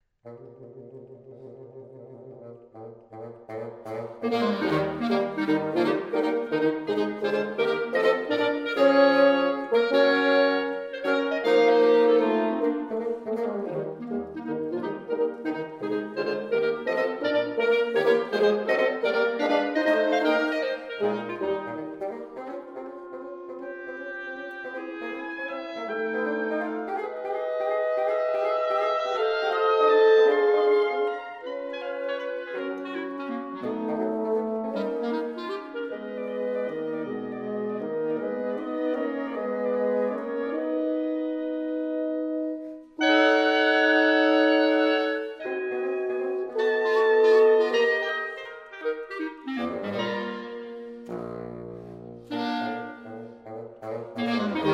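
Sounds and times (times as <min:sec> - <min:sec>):
wind quintet: 0:00.2 - 0:54.7.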